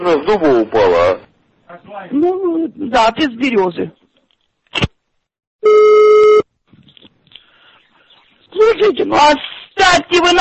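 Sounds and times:
speech: 0.0s - 1.2s, 2.0s - 4.0s, 8.6s - 10.4s
telephone ringing: 5.6s - 6.5s.

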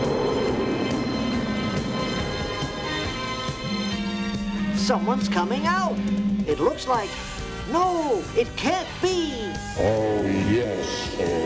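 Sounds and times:
spaceship landing: 0.0s - 5.1s
speech: 4.9s - 11.4s.

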